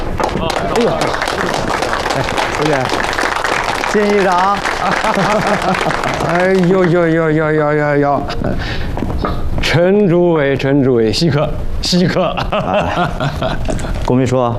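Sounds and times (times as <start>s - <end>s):
audience applause: 0.0s - 7.4s
laughter: 0.3s - 3.1s, 4.0s - 7.2s, 12.0s - 14.1s
speech: 0.4s - 3.0s, 3.9s - 14.5s.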